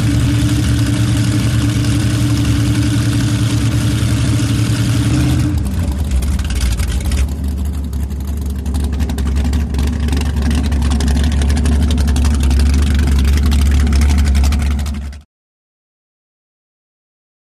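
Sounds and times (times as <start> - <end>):
offshore power boat idling away: 0.0 - 15.2.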